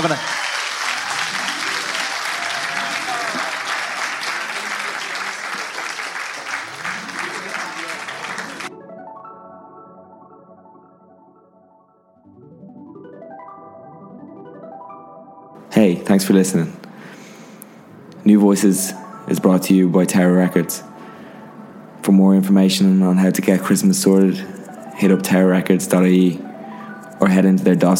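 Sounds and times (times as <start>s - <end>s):
speech: 0.0s - 0.4s, 16.1s - 16.8s, 18.3s - 20.9s, 22.1s - 26.5s, 27.2s - 27.9s
audience applause: 0.0s - 8.7s.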